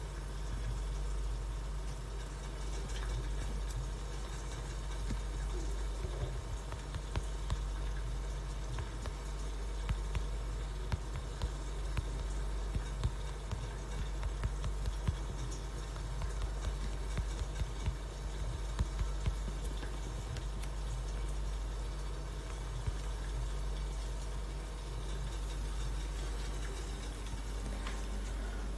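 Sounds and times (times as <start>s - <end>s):
coffee roaster hum roasting green coffee beans: 0.0s - 28.7s
green Kilimanjaro blend coffee beans crackling and popping while roasting: 3.8s - 24.2s.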